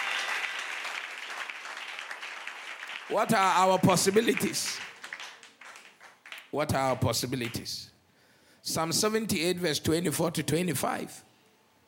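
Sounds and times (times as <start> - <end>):
audience clapping hands: 0.0 - 7.7
speech: 3.1 - 4.9, 6.5 - 7.9, 8.6 - 11.3.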